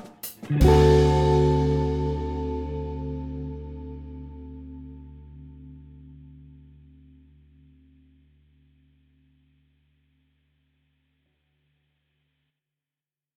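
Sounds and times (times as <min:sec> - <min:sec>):
backing lick: 0:00.4 - 0:07.9.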